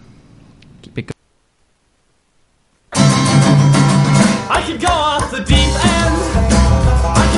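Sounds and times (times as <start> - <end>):
folk punk music: 2.9 - 7.3.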